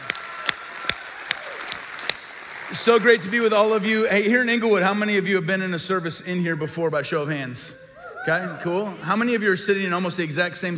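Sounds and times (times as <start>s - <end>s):
church congregation clapping to welcome campuses during a service: 0.0s - 5.0s
speech: 2.7s - 10.7s.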